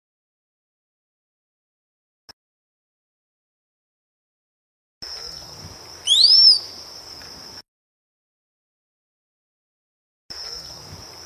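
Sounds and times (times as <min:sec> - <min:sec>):
high insect drone: 0:05.0 - 0:07.6, 0:10.3 - 0:11.2
rose-collared piha ringing whistle song: 0:06.0 - 0:06.8.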